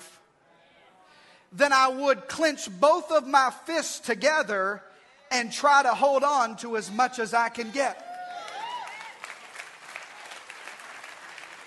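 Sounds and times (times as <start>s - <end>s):
speech: 1.5s - 8.1s
audience clapping: 8.0s - 11.6s.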